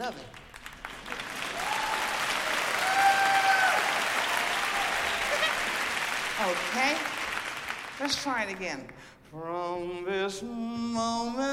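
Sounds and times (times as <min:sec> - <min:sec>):
speech: 0:00.0 - 0:00.4, 0:06.4 - 0:07.1, 0:08.0 - 0:11.5
audience applause: 0:00.0 - 0:08.9.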